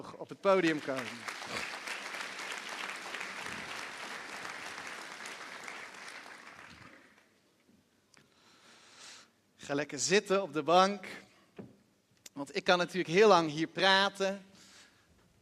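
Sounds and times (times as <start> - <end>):
speech: 0.0 - 1.3, 9.7 - 11.2, 12.4 - 14.5
audience applause: 0.5 - 7.3.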